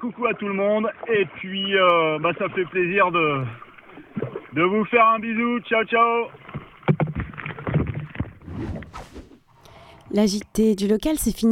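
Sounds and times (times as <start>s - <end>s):
speech: 0.0s - 3.6s, 4.5s - 6.4s, 10.1s - 11.4s
canoe paddling into a headwind: 2.4s - 9.6s
wind buffeting: 8.3s - 9.5s.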